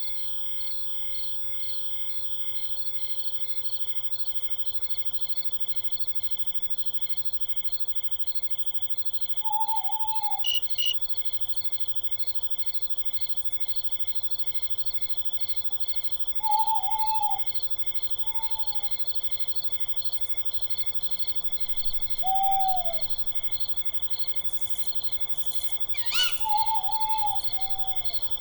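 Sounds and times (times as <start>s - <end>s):
owl in a forest: 9.4s - 11.0s, 16.4s - 19.1s, 21.6s - 23.7s, 24.4s - 28.3s.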